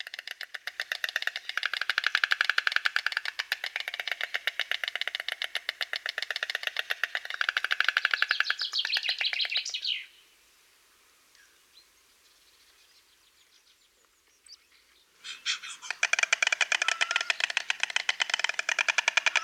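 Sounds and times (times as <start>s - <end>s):
white stork clattering its bill: 0.0s - 9.6s, 15.3s - 19.4s.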